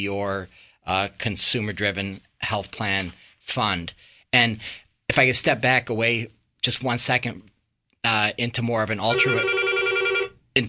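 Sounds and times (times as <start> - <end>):
speech: 0.0 - 9.6
telephone ringing: 9.1 - 10.4.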